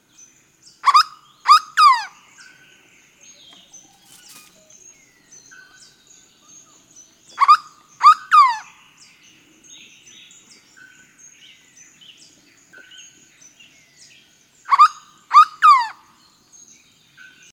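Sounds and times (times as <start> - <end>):
faint high chirps from other birds: 0.1 - 17.5
bird harsh rasping paired calls: 3.5 - 4.8.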